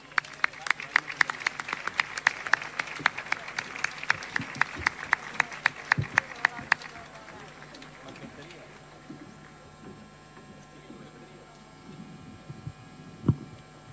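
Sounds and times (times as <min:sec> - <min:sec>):
audience applause: 0:00.0 - 0:09.4
soft murmur: 0:01.0 - 0:13.9.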